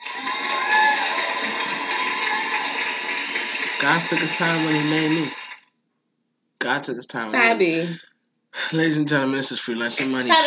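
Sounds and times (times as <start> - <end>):
audience applause and cheering: 0.0 - 5.6
high whoops: 0.2 - 2.8
speech: 3.8 - 5.4, 6.7 - 10.4.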